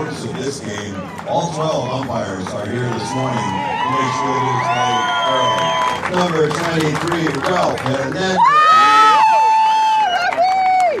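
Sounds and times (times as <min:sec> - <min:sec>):
speech: 0:00.0 - 0:08.9
ecstatic crowd cheering the Azusa Challengers at a baseball game: 0:00.0 - 0:10.9.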